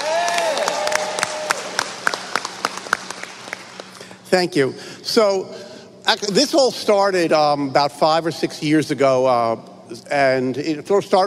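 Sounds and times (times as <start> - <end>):
audience applause: 0.0 - 4.0
speech: 4.3 - 11.2.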